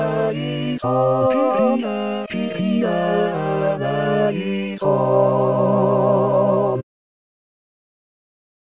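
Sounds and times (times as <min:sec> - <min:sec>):
tenor singing a Kyrie: 0:00.0 - 0:06.8.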